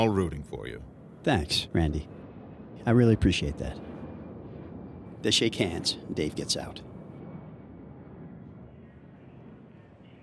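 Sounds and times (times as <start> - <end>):
speech: 0.0 - 2.2, 2.8 - 3.9, 5.2 - 6.9
aircraft drone outside Los Angeles International Airport: 0.0 - 10.2.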